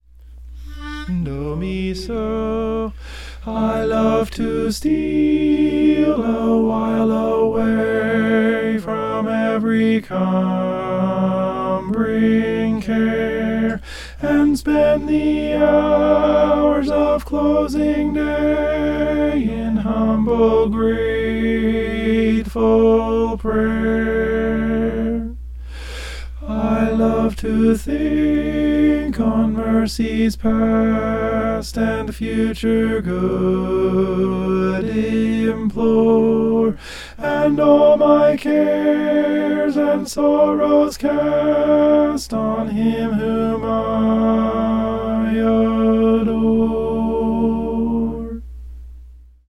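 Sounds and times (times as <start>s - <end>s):
tenor singing: 0.6s - 25.5s, 26.3s - 48.5s.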